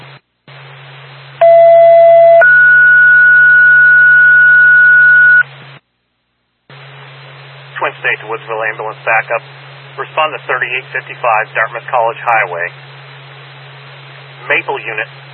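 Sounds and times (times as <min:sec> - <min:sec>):
two-tone dispatch page over radio: 0:01.4 - 0:05.4
radio static: 0:07.8 - 0:12.8, 0:14.4 - 0:15.1
speech: 0:08.3 - 0:12.9, 0:14.5 - 0:15.2.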